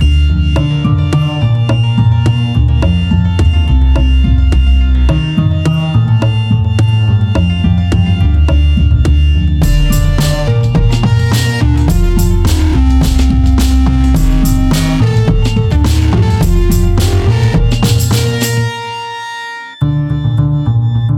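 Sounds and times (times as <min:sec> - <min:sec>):
polka music: 0:00.1 - 0:21.1.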